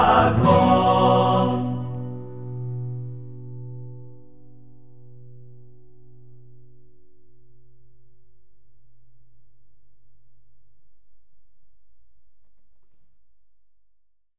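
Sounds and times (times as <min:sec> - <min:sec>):
guitar: 0:00.0 - 0:09.2.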